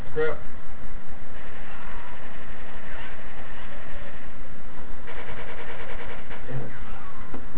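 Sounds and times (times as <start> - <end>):
speech: 0.1 - 0.5
video game helicopter engine droning: 1.4 - 7.4.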